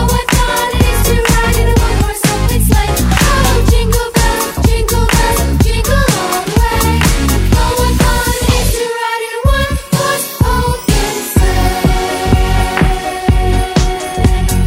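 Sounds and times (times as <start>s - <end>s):
choir singing: 0.0s - 14.6s
synthetic saxophone: 11.3s - 14.6s.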